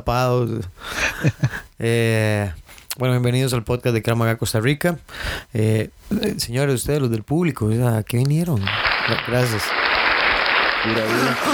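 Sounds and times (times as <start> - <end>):
speech: 0.0 - 9.8, 10.8 - 11.5
audience applause: 8.7 - 11.5
laughter: 8.9 - 11.5.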